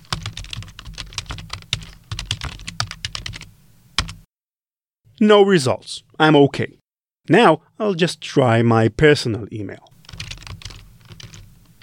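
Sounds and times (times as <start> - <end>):
typing an email address on a computer keyboard: 0.0 - 4.2, 10.0 - 11.8
speech: 5.2 - 9.9.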